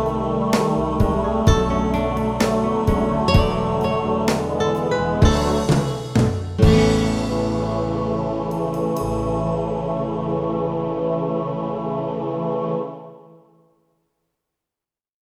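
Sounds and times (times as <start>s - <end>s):
soft gospel music: 0.0s - 13.0s.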